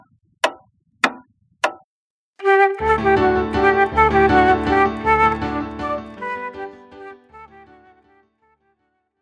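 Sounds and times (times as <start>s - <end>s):
instrumental music: 2.4s - 8.6s.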